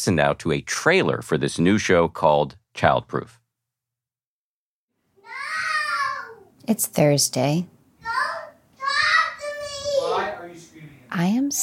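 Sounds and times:
speech: 0:00.0 - 0:03.4, 0:06.7 - 0:08.4, 0:11.1 - 0:11.6
children yelling: 0:05.2 - 0:06.5, 0:08.0 - 0:10.5.

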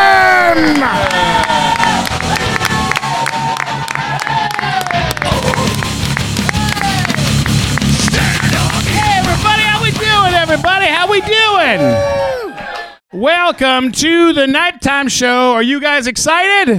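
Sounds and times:
audience cheering with whoops and shouts: 0:00.0 - 0:14.0
audience applause at a live comedy show: 0:00.6 - 0:10.0
speech: 0:13.5 - 0:16.7.

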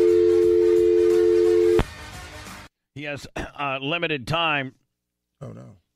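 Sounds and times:
electronic telephone ringing: 0:00.0 - 0:01.8
speech: 0:03.0 - 0:04.8, 0:05.4 - 0:05.8.

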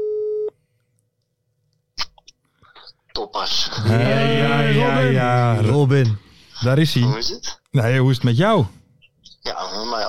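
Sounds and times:
telephone call tone beep: 0:00.0 - 0:00.5
speech: 0:03.4 - 0:08.8.

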